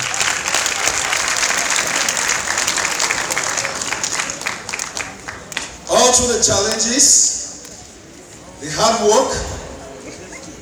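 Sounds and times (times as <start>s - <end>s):
audience applause: 0.0s - 5.8s
speech: 6.1s - 7.3s, 8.7s - 9.5s.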